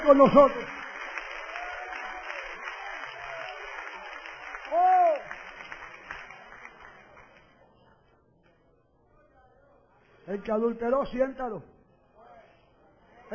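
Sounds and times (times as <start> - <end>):
congregation clapping during a church service: 0.0 - 7.6
speech: 0.1 - 0.7, 10.3 - 11.8.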